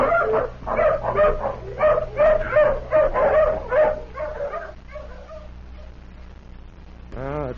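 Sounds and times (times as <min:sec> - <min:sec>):
tracking hound barking and whimpering: 0:00.0 - 0:06.0
low hum: 0:00.0 - 0:07.5.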